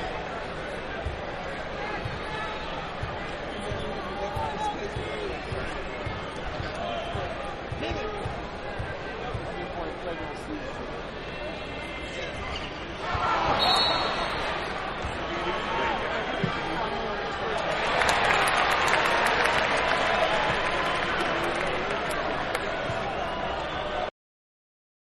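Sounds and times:
crowd at a sports event: 0.0s - 24.1s.

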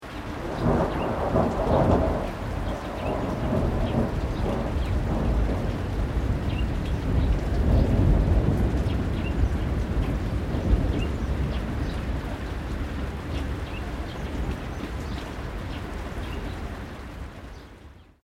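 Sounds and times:
light rain: 0.0s - 18.2s
distant low thunder: 0.3s - 16.7s
birds: 0.5s - 5.4s, 6.5s - 8.0s, 8.8s - 12.4s, 13.3s - 16.8s, 17.4s - 18.1s.

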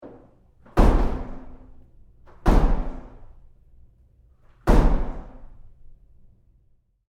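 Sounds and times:
bathroom stall door impact: 0.0s - 3.4s, 4.6s - 5.5s.

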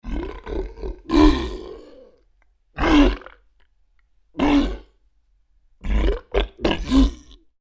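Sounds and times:
large creature grunting in pain: 0.0s - 2.2s, 2.8s - 3.4s, 4.4s - 4.9s, 5.8s - 7.4s.

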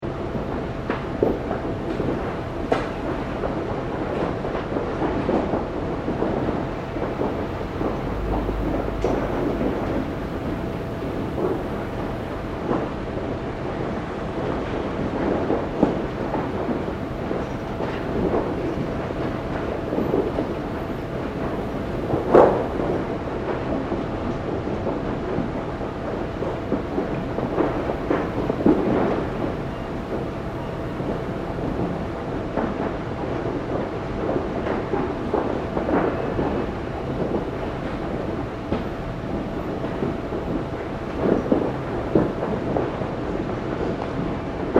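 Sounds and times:
gigantic industrial tumbler operating: 0.0s - 44.7s.

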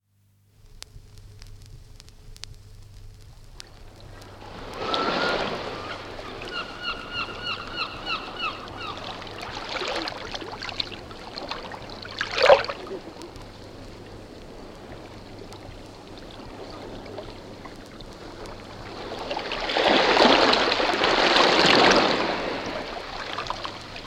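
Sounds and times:
sea lapping round rocks: 1.1s - 24.0s.

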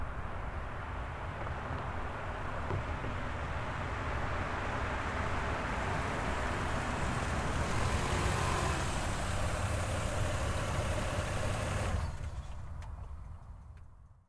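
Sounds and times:
Highlander car driving up slowly and stopping: 0.2s - 13.9s.

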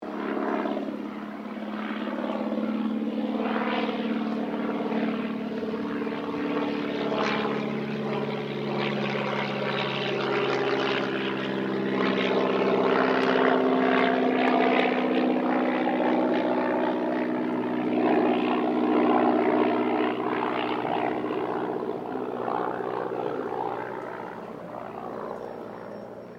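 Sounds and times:
de Havilland DH82A Tiger Moth aircraft passing: 0.0s - 26.3s.

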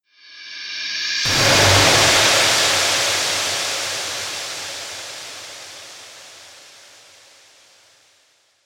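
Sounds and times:
horror trailer hit strike: 1.3s - 6.4s.

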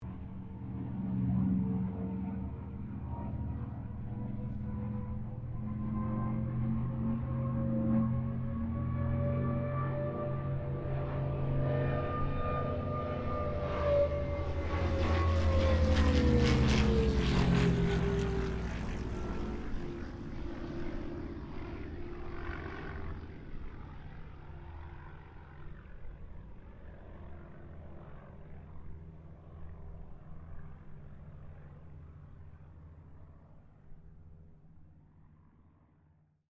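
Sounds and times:
Kittyhawk airplane passing: 0.0s - 36.2s.

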